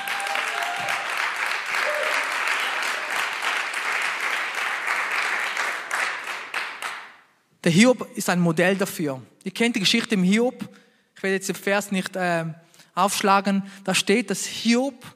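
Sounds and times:
audience applause: 0.0s - 7.1s
speech: 7.6s - 15.1s.

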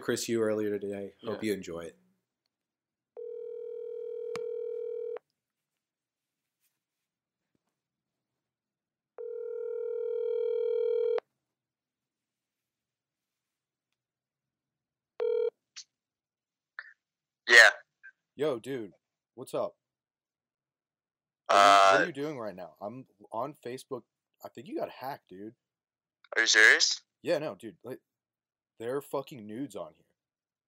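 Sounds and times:
speech: 0.0s - 2.0s, 18.4s - 19.8s, 21.5s - 25.6s, 26.3s - 28.1s, 28.8s - 30.0s
telephone ringback tone: 3.2s - 5.2s, 9.2s - 11.2s, 15.2s - 15.5s.

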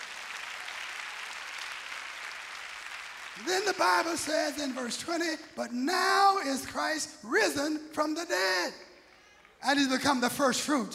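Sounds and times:
audience clapping hands: 0.0s - 5.6s
speech: 3.4s - 8.9s, 9.6s - 10.9s.

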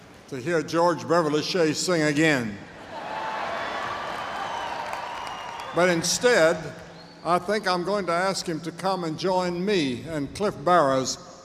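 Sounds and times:
speech: 0.3s - 2.7s, 5.8s - 11.3s
audience applause: 3.0s - 6.0s.

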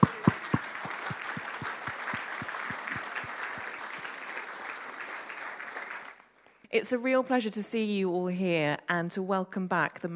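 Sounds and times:
audience applause: 0.0s - 6.3s
speech: 6.8s - 10.1s.

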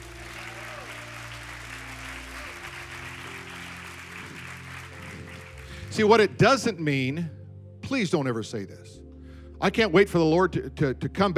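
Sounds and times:
audience clapping: 0.0s - 6.2s
sustained low musical tones: 0.0s - 11.3s
speech: 5.9s - 9.0s, 9.6s - 11.3s.

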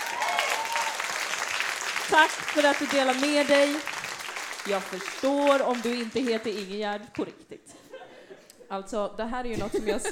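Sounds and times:
audience applause: 0.0s - 6.7s
speech: 2.1s - 4.0s, 4.6s - 7.8s, 8.7s - 10.1s.

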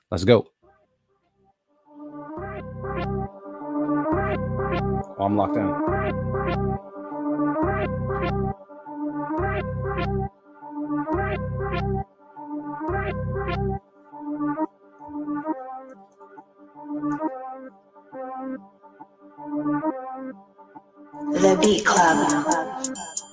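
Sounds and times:
speech: 0.1s - 0.6s, 5.2s - 6.7s, 21.5s - 22.9s
drill music beat: 2.0s - 18.7s, 21.2s - 23.3s.

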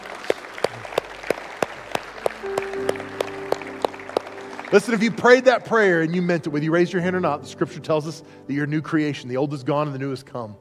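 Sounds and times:
audience applause: 0.0s - 6.2s
speech: 4.7s - 10.5s.

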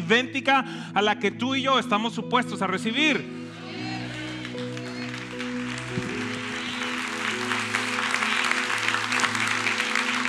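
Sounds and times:
sustained low musical tones: 0.0s - 10.2s
speech: 0.1s - 3.4s
church audience applause: 4.0s - 10.2s.

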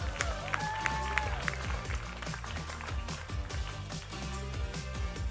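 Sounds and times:
audience clapping: 0.0s - 5.2s.

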